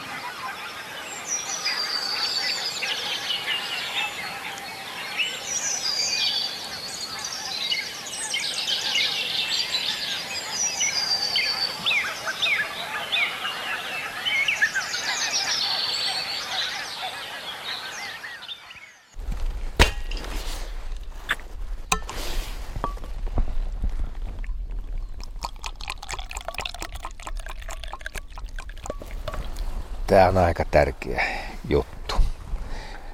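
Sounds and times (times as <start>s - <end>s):
spring dawn birdsong chorus over flooded fields: 0.0s - 22.8s, 24.3s - 33.1s
coffee being poured outdoors: 21.9s - 30.0s
light clicks and drips: 22.8s - 29.8s
speech: 30.1s - 32.0s.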